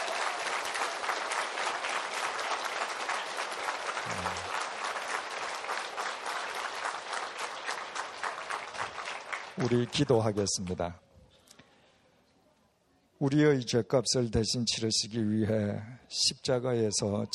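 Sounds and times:
audience applause: 0:00.0 - 0:10.5
speech: 0:09.6 - 0:11.0, 0:13.2 - 0:17.3.

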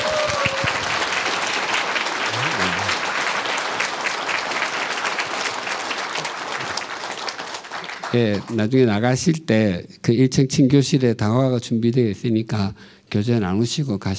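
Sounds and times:
audience applause: 0:00.0 - 0:08.6
speech: 0:08.1 - 0:14.1.

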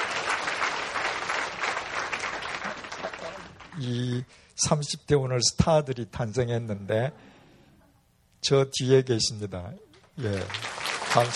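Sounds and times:
audience applause: 0:00.0 - 0:04.2, 0:10.2 - 0:11.3
speech: 0:03.8 - 0:07.3, 0:08.4 - 0:11.3.

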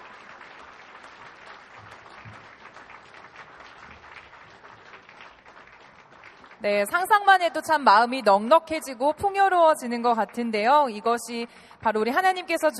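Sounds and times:
audience applause: 0:00.0 - 0:07.1
speech: 0:06.6 - 0:12.7.

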